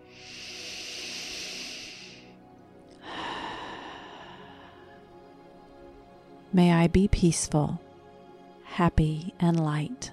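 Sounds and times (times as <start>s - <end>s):
deep breath during a loving-kindness meditation: 0.0s - 5.4s
speech: 6.5s - 7.8s, 8.8s - 10.1s.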